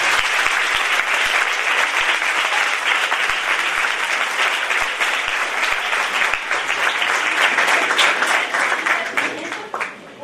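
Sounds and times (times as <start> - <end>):
audience applause: 0.0 - 10.1.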